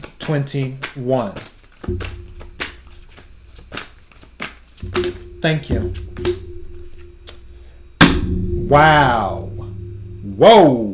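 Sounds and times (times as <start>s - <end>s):
oracle cards being shuffled for a reading: 0.0s - 5.2s
speech: 0.3s - 2.2s, 5.0s - 6.4s, 8.7s - 9.4s, 10.3s - 10.9s.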